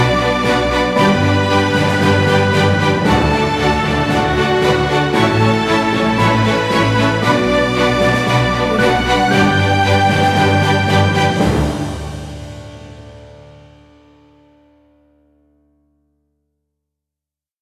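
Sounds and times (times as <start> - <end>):
orchestral percussion kit: 0.0 - 13.8.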